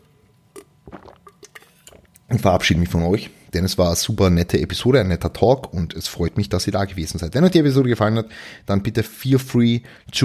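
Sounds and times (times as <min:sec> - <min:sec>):
person sipping a drink, slurping and swallowing: 0:00.0 - 0:02.3
speech: 0:02.3 - 0:10.2.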